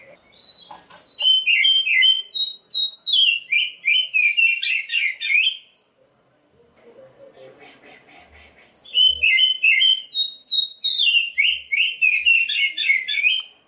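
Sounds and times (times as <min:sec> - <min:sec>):
black-breasted Oriental magpie-robin song: 0:00.2 - 0:05.8, 0:08.6 - 0:13.6.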